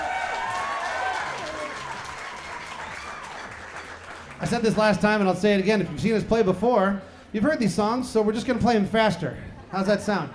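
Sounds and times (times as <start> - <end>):
audience applause for school big band: 0.0 - 4.8
speech: 4.4 - 10.3.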